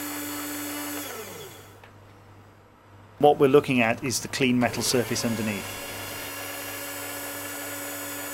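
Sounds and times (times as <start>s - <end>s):
precision drill whining as it lowers onto a metal sample: 0.0s - 1.8s, 4.6s - 8.3s
motor hum: 0.0s - 2.1s, 4.5s - 8.3s
speech: 3.2s - 5.9s.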